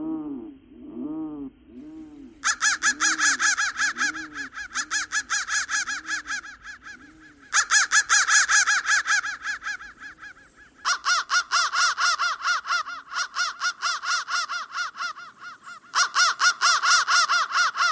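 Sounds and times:
crows giving rapid harsh caws: 0:01.8 - 0:17.9.

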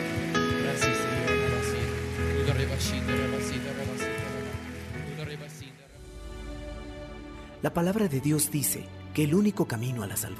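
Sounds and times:
audience applauding loudly: 0:00.0 - 0:05.8
speech: 0:07.6 - 0:10.3.

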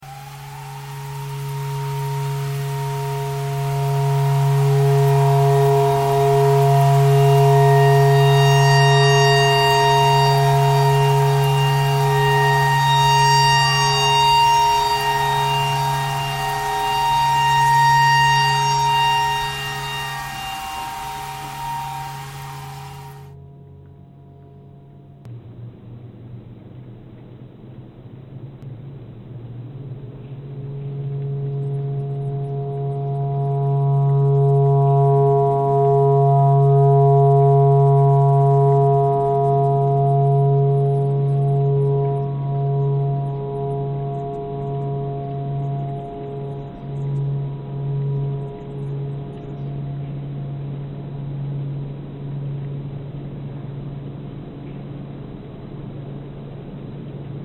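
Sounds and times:
clarinet playing pentatonic tornado siren tune: 0:00.0 - 0:23.5, 0:30.7 - 0:50.3.

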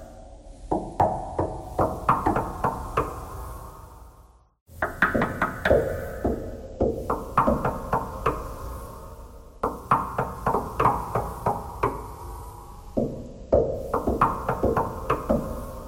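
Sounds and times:
knocking thread noise: 0:00.6 - 0:03.3, 0:04.8 - 0:08.6, 0:09.6 - 0:12.2, 0:12.9 - 0:15.8.

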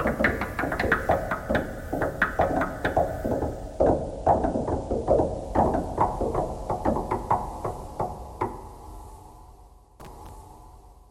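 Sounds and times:
knocking thread noise: 0:00.0 - 0:08.7.

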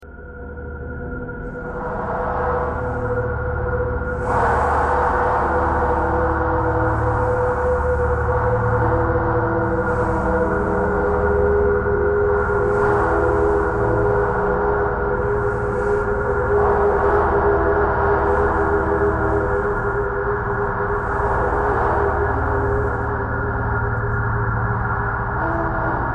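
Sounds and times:
traffic: 0:01.5 - 0:26.1.

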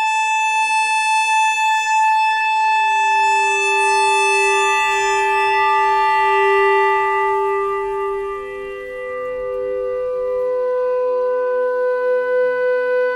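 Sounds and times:
clarinet notes: 0:00.0 - 0:13.1
clarinet thread noise: 0:02.9 - 0:11.5.

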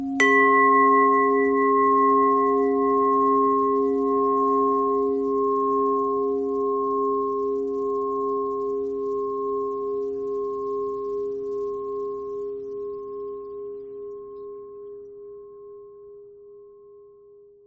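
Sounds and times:
pentatonic bell melody: 0:00.2 - 0:12.3.

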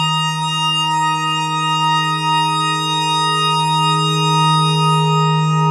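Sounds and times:
clarinet notes in E: 0:00.1 - 0:05.6.

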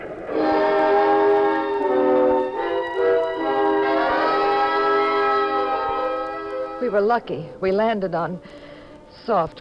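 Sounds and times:
train whistle as the train passes: 0:00.3 - 0:06.8
speech: 0:06.9 - 0:09.5.

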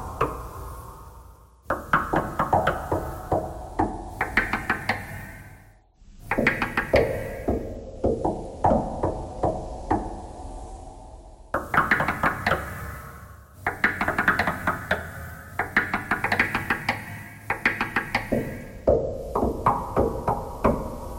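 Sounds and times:
knocking thread noise: 0:01.7 - 0:05.2, 0:06.2 - 0:10.3, 0:11.6 - 0:12.8, 0:13.6 - 0:21.1.

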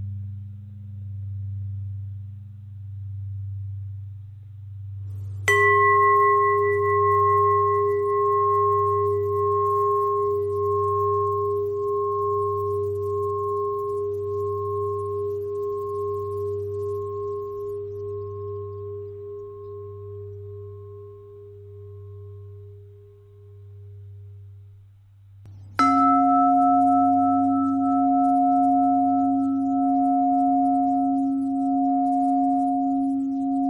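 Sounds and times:
long pentatonic bell thread: 0:05.5 - 0:21.2, 0:25.8 - 0:33.6.

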